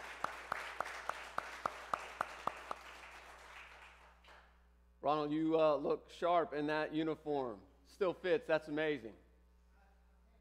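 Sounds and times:
audience applause: 0.0s - 4.1s
speech: 5.0s - 9.2s.

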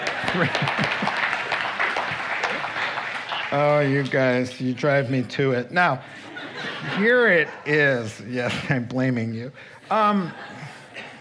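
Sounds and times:
laughter: 0.0s - 2.8s, 5.8s - 11.1s
audience clapping: 0.0s - 4.8s
speech: 0.3s - 1.2s, 3.5s - 10.6s.

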